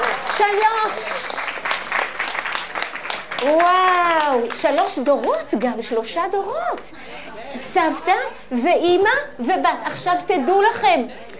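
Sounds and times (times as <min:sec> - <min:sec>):
audience applause for two women from Kiryat Shmona: 0:00.0 - 0:05.0
speech: 0:00.4 - 0:01.4, 0:03.4 - 0:11.2.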